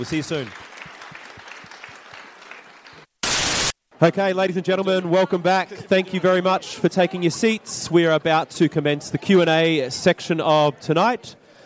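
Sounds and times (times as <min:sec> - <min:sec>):
speech: 0:00.0 - 0:00.7, 0:04.0 - 0:11.4
audience applause: 0:00.0 - 0:03.1
loud burst of noise: 0:03.2 - 0:03.8.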